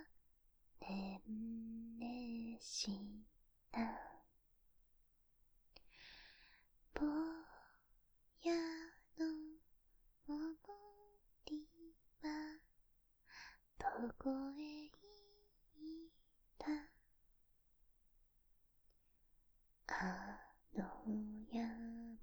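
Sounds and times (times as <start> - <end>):
person singing a lullaby ASMR: 0.8 - 3.2, 7.0 - 7.8, 8.4 - 9.6, 10.3 - 12.7, 13.3 - 17.0, 19.9 - 22.2.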